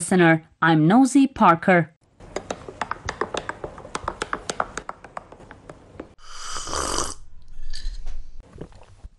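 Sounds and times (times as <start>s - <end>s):
speech: 0.1s - 1.9s
sipping coffee: 6.2s - 9.1s.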